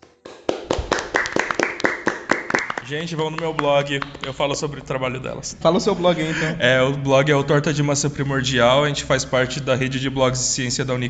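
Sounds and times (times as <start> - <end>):
people clapping hands: 0.0 - 4.7
speech: 2.9 - 11.0.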